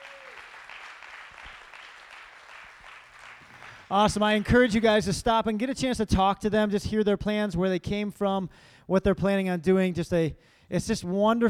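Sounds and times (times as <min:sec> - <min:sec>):
church congregation clapping for missionaries: 0:00.0 - 0:04.9
speech: 0:03.9 - 0:11.4.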